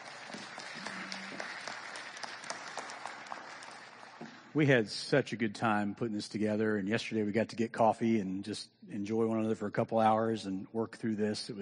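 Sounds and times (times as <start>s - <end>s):
audience applause thanking a presenter: 0.0s - 4.5s
speech: 4.6s - 11.5s.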